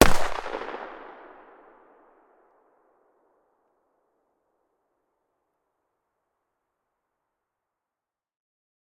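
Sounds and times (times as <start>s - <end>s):
Lynx 50 sniper rifle firing: 0.0s - 0.8s.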